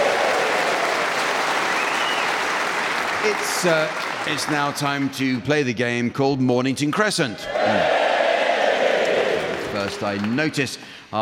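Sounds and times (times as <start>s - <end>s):
crowd applauding: 0.0s - 5.4s, 8.7s - 10.7s
speech: 3.2s - 8.0s, 9.9s - 11.2s.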